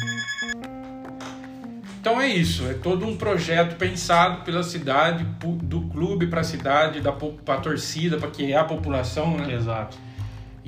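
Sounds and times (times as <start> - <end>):
telephone ringing with bright electronic tones: 0.0 - 0.6
speech: 2.0 - 10.0.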